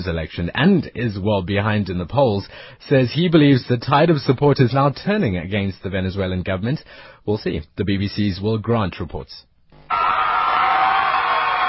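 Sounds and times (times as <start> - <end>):
speech: 0.0 - 10.2
crowd of fans cheering: 9.9 - 11.6.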